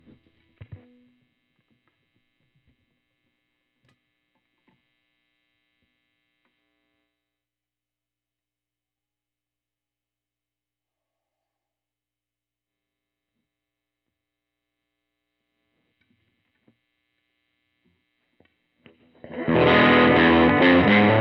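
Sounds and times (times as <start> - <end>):
guitar solo: 19.2 - 21.1.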